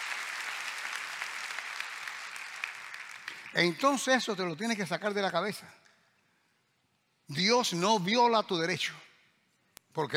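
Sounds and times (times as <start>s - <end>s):
audience applauding: 0.0s - 4.1s
speech: 3.5s - 5.8s, 7.3s - 9.0s, 10.0s - 10.1s.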